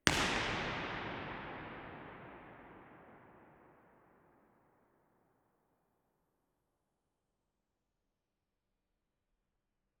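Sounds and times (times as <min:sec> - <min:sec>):
York Minster omnidirectional impulse response: 0:00.1 - 0:04.2.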